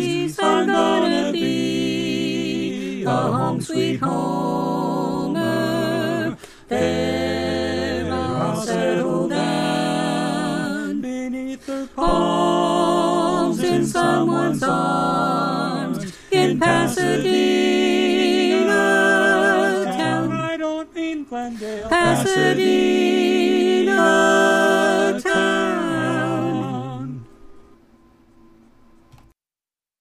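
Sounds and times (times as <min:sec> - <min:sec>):
tenor voice singing: 0:00.0 - 0:27.3.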